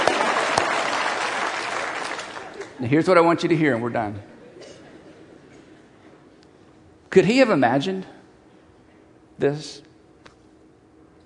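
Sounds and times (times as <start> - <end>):
audience applause: 0.0 - 2.8
speech: 2.8 - 4.3, 7.1 - 8.2, 9.4 - 9.9.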